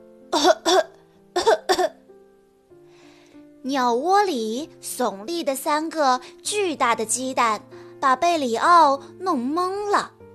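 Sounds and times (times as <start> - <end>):
coughing from choking on dust: 0.4 - 2.0
speech: 3.6 - 10.2.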